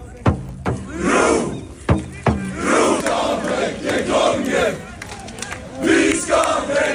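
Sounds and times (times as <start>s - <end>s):
crowds chanting and cheering in Oslo streets after a football win: 0.7s - 6.9s
sharp claps or bangs: 1.9s - 6.9s.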